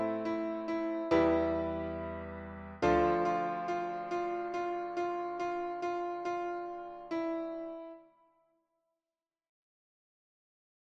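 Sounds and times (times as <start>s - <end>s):
piano: 0.0s - 8.3s.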